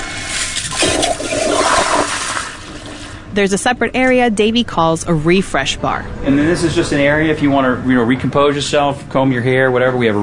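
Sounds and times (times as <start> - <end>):
motion-sensor toilet flushing in a restroom: 0.0 - 3.4
speech: 3.4 - 10.2.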